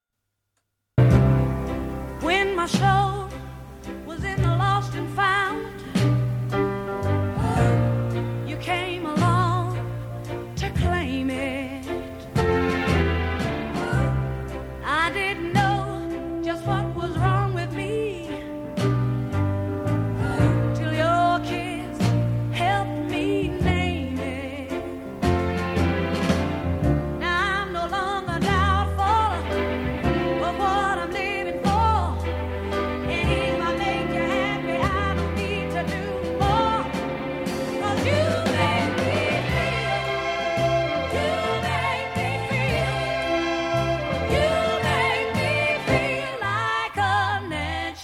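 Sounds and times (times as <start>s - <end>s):
soul music: 1.0s - 48.0s.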